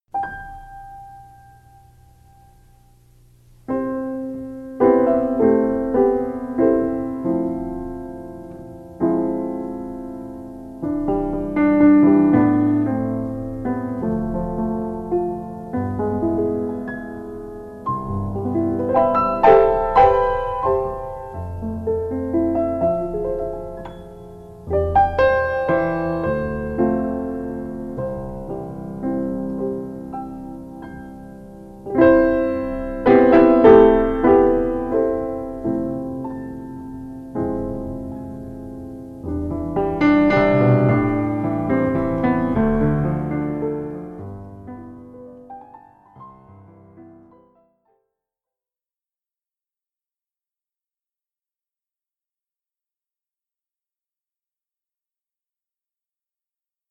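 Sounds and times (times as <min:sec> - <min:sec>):
ballet music: 0:03.7 - 0:47.6.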